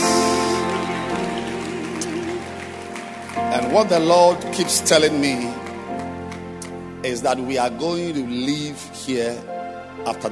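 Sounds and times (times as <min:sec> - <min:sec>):
audience clapping hands: 0:00.0 - 0:08.0
sustained music with a wavering held tone: 0:00.0 - 0:10.2
speech: 0:03.5 - 0:05.6, 0:07.0 - 0:10.2.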